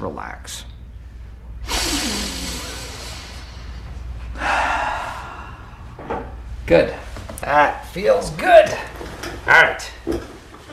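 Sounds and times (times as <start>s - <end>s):
speech: 0.0s - 0.7s, 6.7s - 10.3s
deep breathing: 0.9s - 6.6s.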